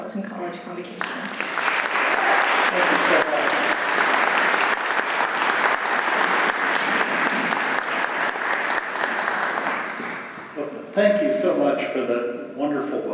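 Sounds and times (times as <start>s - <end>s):
speech: 0.1s - 1.7s, 2.7s - 3.7s, 11.0s - 13.1s
audience applause: 1.0s - 10.7s.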